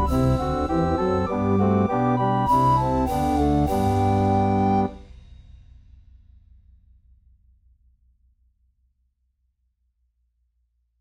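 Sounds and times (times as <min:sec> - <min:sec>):
recorder melody: 0:00.0 - 0:05.0.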